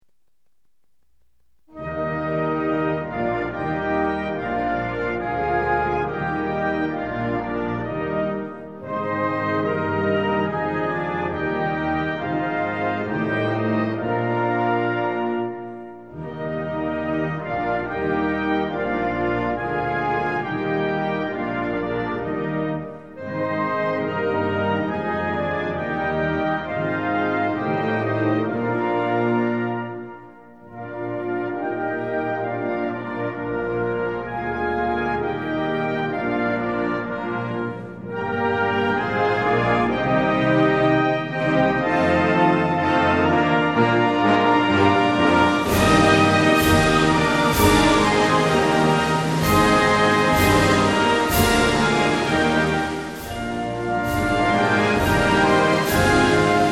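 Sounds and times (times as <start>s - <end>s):
classic national anthem music: 0.0s - 56.6s.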